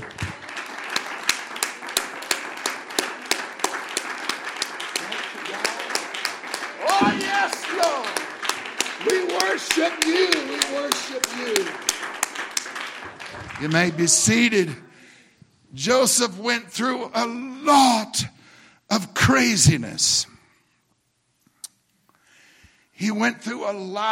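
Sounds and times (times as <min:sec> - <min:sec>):
audience clapping: 0:00.0 - 0:14.8
speech: 0:09.0 - 0:11.9, 0:13.6 - 0:14.9, 0:15.7 - 0:18.3, 0:18.9 - 0:20.3, 0:23.0 - 0:24.1.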